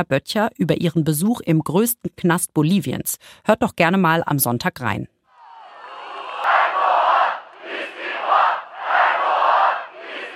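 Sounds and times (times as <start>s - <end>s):
speech: 0.0s - 5.2s
protest crowd chanting in unison outside Istanbul city hall: 5.3s - 10.3s.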